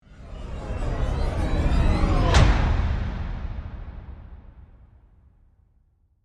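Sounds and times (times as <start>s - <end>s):
flanged sweeper to hit transition: 0.0s - 4.2s.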